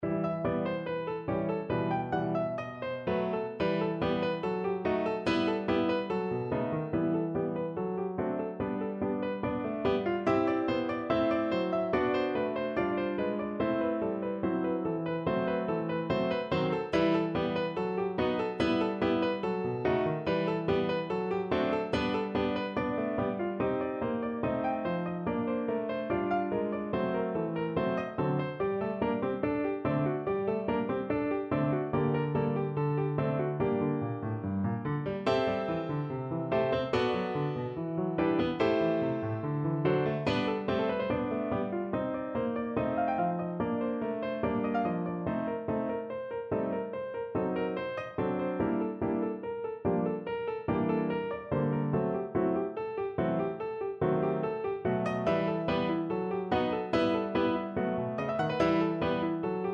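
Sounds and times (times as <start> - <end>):
toccatina piece: 0.1 - 59.7.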